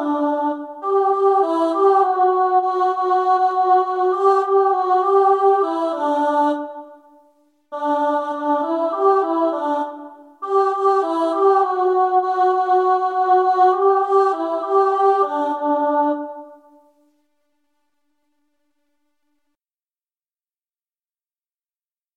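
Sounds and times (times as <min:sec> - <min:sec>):
choir alto karaoke track: 0:00.0 - 0:17.0.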